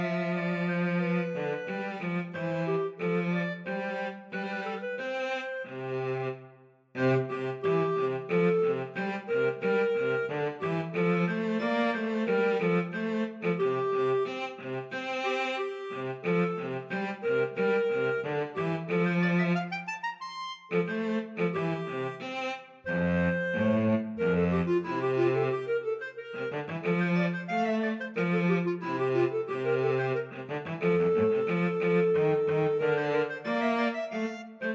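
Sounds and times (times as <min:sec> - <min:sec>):
cello in a clarinet-cello duet: 0:00.0 - 0:34.7
clarinet in a clarinet-cello duet: 0:00.0 - 0:34.7.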